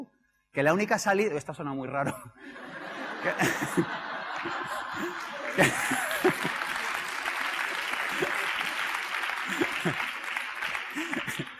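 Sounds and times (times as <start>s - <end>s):
speech: 0.6s - 6.5s
laughter: 2.0s - 11.5s
audience applause: 2.8s - 11.5s.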